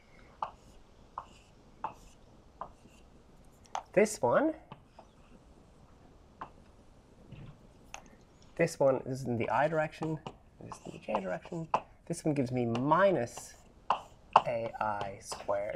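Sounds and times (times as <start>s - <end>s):
handwriting mathematical work: 0.4s - 3.1s, 10.7s - 11.8s, 13.4s - 15.7s
speech: 4.0s - 4.6s, 8.6s - 13.6s, 14.5s - 15.7s.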